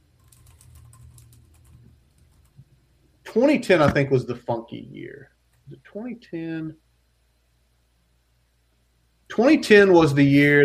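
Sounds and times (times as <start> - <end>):
low steady hum: 0.0 - 10.6
typing on a computer keyboard: 0.2 - 2.6
speech: 3.3 - 6.8, 9.4 - 10.6.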